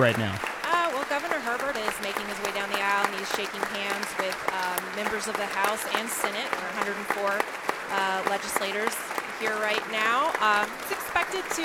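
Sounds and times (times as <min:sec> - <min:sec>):
speech: 0:00.0 - 0:00.5, 0:02.0 - 0:11.6
applause: 0:00.0 - 0:11.6.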